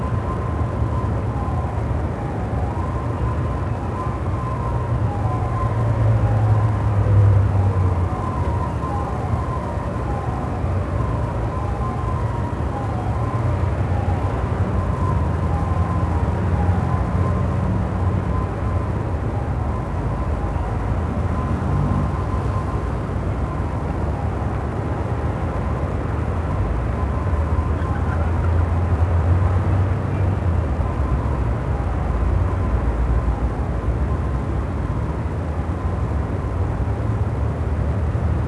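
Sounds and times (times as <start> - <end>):
elevated city ambience noise: 0.0 - 38.4.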